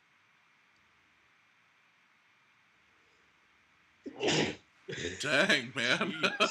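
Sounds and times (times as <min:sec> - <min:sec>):
person sneezing: 0:04.1 - 0:05.3
laughter: 0:04.9 - 0:06.4
speech: 0:05.2 - 0:06.4.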